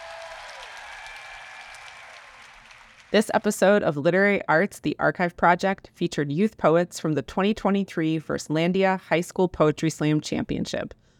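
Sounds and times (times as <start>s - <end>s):
audience applause for a poet at a high school poetry slam: 0.0s - 3.3s
speech: 3.1s - 11.0s.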